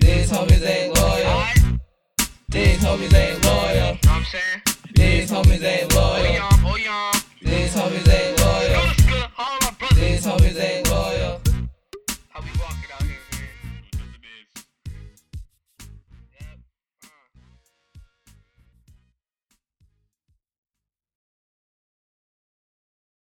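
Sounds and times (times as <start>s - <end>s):
group hip hop with vocals: 0.0s - 1.8s, 2.5s - 15.4s.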